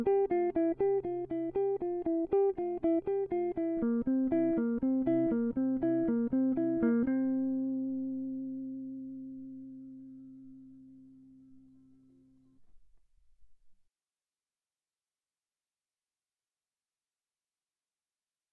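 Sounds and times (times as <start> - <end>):
improvised music: 0.0 - 12.3.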